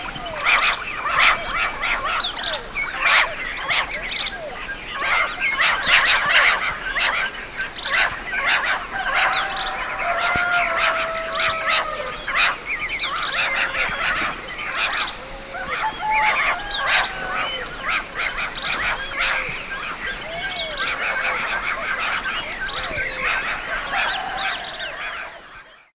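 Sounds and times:
steady high hiss: 0.0s - 25.8s
chorus of birds chirping and twittering: 0.0s - 25.9s.

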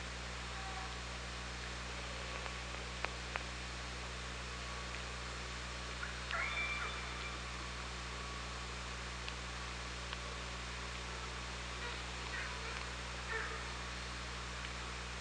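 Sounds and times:
low hum: 0.0s - 15.2s
orca tonal call: 6.0s - 7.6s, 11.8s - 13.8s.

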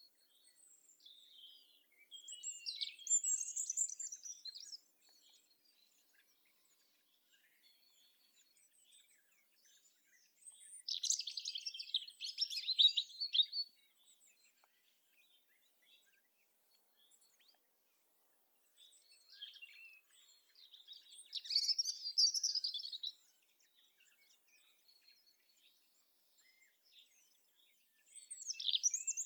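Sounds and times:
European robin song: 1.1s - 4.9s, 10.1s - 13.7s, 18.7s - 24.2s, 28.0s - 29.2s.

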